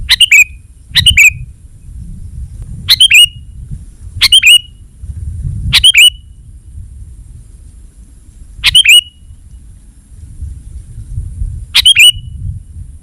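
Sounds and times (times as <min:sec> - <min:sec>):
sooty-headed bulbul calls: 0:00.0 - 0:01.5, 0:02.9 - 0:03.5, 0:04.2 - 0:04.8, 0:05.7 - 0:06.3, 0:08.6 - 0:09.6, 0:11.7 - 0:12.4.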